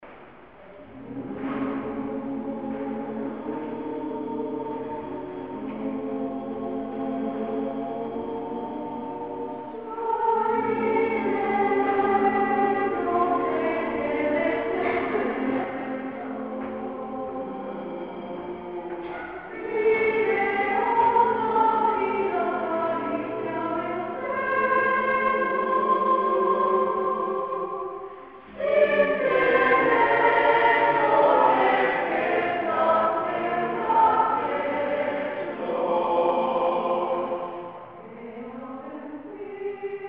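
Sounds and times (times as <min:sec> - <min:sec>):
children's choir singing: 0:00.1 - 0:40.0.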